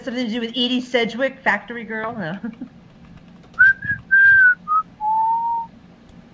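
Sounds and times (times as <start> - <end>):
speech: 0.1 - 2.8
person whistling a tune: 3.6 - 5.7.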